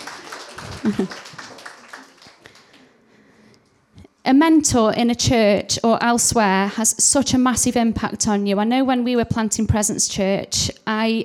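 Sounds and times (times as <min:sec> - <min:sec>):
round of applause from a group: 0:00.0 - 0:03.0
speech: 0:00.8 - 0:01.4, 0:04.3 - 0:11.2.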